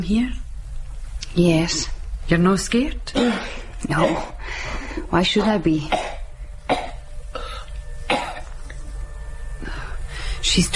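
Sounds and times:
speech: 0.0 - 0.4, 1.3 - 6.9, 10.6 - 10.7
coughing: 3.1 - 4.4, 5.9 - 8.6.

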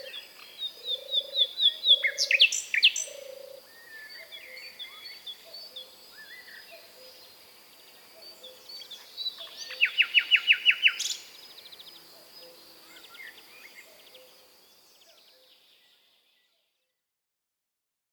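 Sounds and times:
common nightingale Luscinia megarhynchos singing: 0.0 - 7.3, 8.2 - 14.4.

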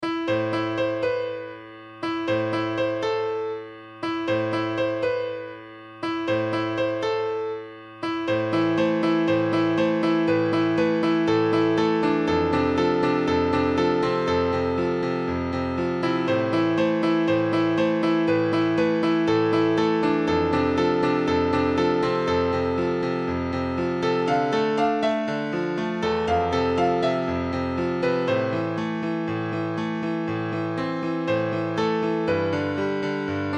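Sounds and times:
sad piano: 0.0 - 33.5.

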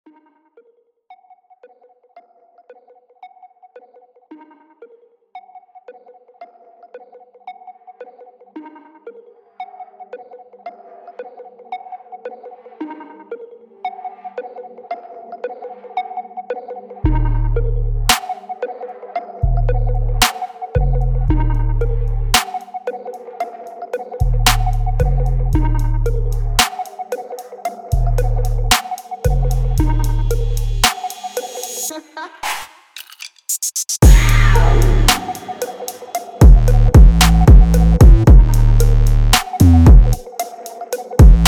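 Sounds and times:
music beat: 17.1 - 18.6, 19.4 - 41.4.

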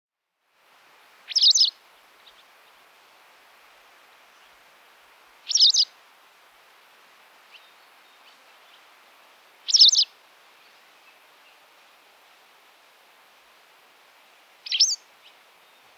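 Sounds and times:
white wagtail chirping: 1.3 - 1.7, 5.5 - 5.9, 9.7 - 10.1, 14.6 - 15.0.

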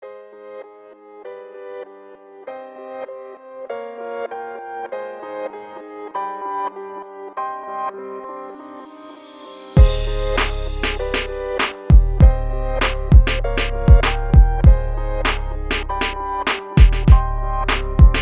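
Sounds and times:
RnB beat: 9.8 - 18.2.

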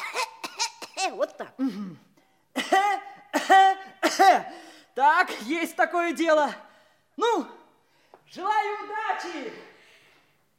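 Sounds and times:
feigned coughing fit: 0.0 - 4.6
speech: 1.1 - 2.1, 4.2 - 7.6, 8.3 - 9.7.

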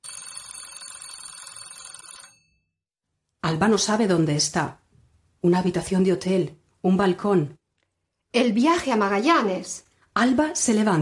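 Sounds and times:
alarm clock ringing with metallic bell clatter: 0.0 - 2.5
speech: 3.5 - 4.8, 5.4 - 7.6, 8.3 - 10.9.

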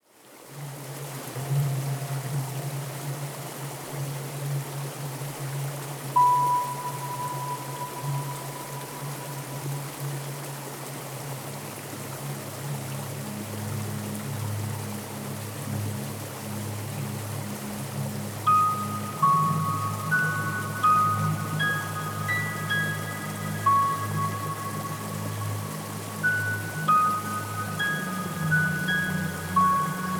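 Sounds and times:
exotic nature ambience: 0.3 - 30.1.

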